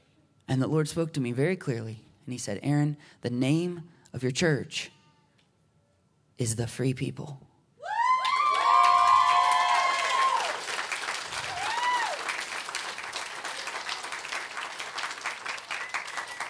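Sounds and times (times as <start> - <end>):
speech: 0.5 - 5.0, 6.4 - 7.5
church congregation whooping and shouting: 7.8 - 12.5
church congregation applauding: 8.2 - 16.4.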